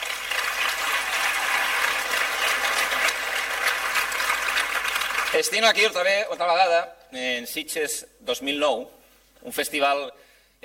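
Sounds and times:
audience applause: 0.0s - 5.8s
speech: 5.4s - 10.6s.

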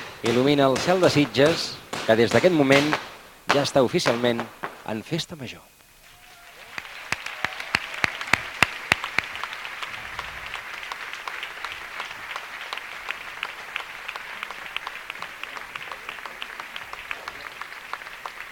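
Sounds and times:
speech: 0.2s - 5.7s
audience applauding: 6.0s - 18.4s.

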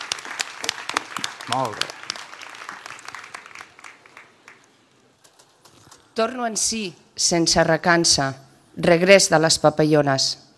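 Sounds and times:
audience applause at a festival proclamation ceremony: 0.0s - 5.5s
speech: 1.5s - 2.0s, 6.2s - 10.4s.

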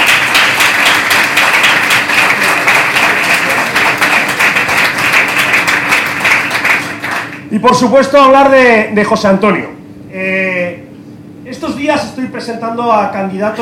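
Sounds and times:
audience applause: 0.0s - 7.4s
speech: 7.6s - 10.8s, 11.5s - 13.5s.

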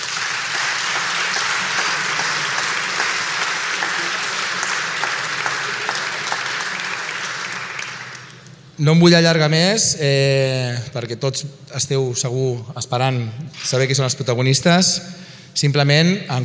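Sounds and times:
audience applause: 0.0s - 8.7s
speech: 8.8s - 16.4s.

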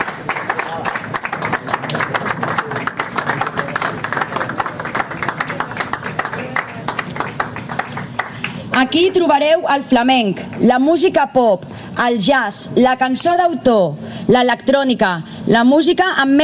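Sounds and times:
audience applause: 0.0s - 8.8s
speech: 8.9s - 16.4s.

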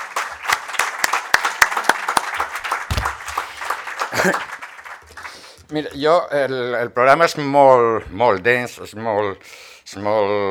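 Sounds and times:
audience applause: 0.0s - 5.4s
speech: 4.2s - 4.5s, 5.7s - 10.4s.

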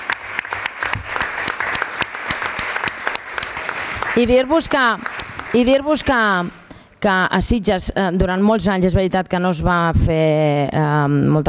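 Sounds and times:
audience applause: 0.0s - 6.4s
speech: 4.2s - 11.4s.

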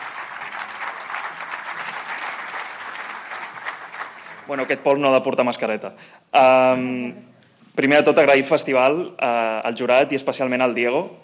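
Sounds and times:
audience applause: 0.0s - 5.0s
speech: 4.5s - 11.2s.

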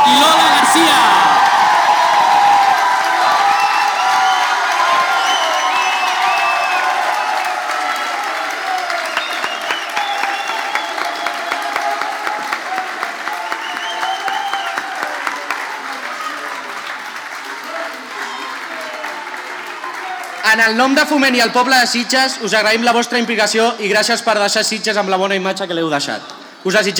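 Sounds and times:
strong audience applause and cheering: 0.0s - 20.6s
speech: 20.7s - 26.9s.

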